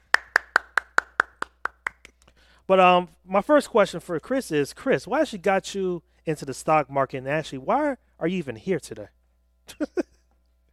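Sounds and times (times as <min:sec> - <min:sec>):
round of applause: 0:00.0 - 0:02.1
speech: 0:02.7 - 0:10.1.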